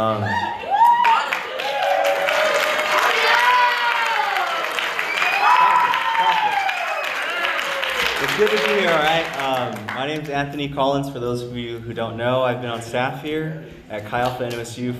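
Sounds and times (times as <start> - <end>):
speech: 0.0 - 0.6, 8.4 - 14.9
audience applause: 0.6 - 10.3.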